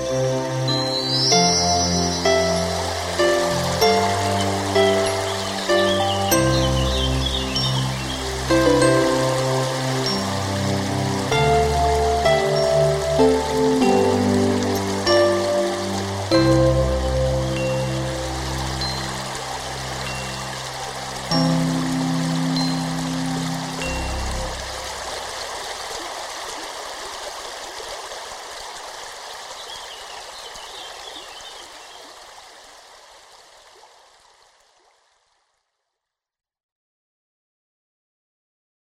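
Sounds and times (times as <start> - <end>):
birds singing in spring: 0.0 - 25.2, 29.3 - 32.2
spring stream flowing: 0.0 - 35.8.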